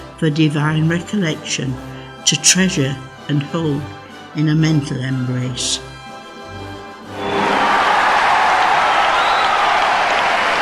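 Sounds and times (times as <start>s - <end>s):
speech: 0.2s - 5.9s
roaring applause from an arena crowd: 7.2s - 10.6s.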